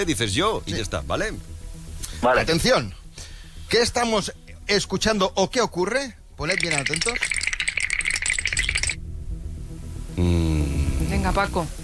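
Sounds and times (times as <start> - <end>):
speech: 0.0 - 1.5, 2.2 - 3.0, 3.7 - 7.4, 10.2 - 11.8
spray paint can being shaken: 6.4 - 9.0.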